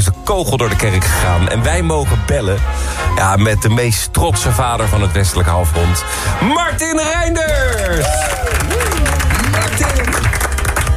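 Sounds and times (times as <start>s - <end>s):
speech: 0.3s - 9.0s
lukewarm scattered applause: 7.5s - 10.9s.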